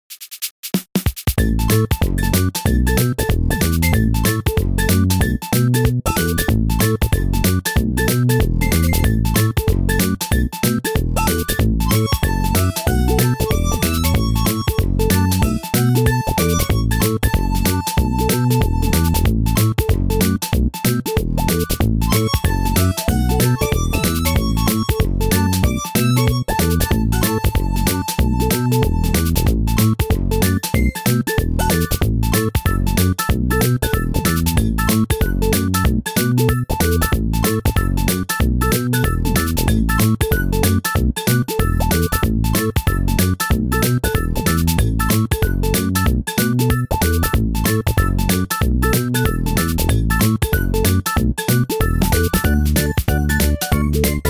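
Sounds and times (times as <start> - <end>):
background music: 1.4 - 54.2.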